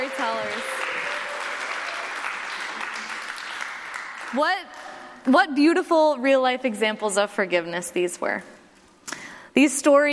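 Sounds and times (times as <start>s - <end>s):
round of audience applause: 0.0s - 4.8s
speech: 4.3s - 8.6s, 9.6s - 10.1s.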